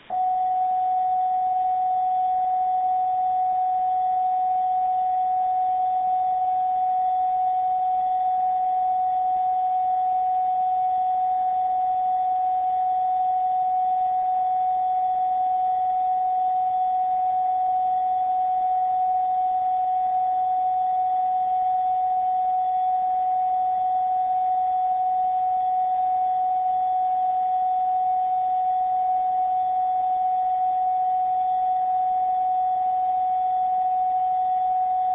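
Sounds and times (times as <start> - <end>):
carrier tone through a radio receiver: 0.0 - 35.1.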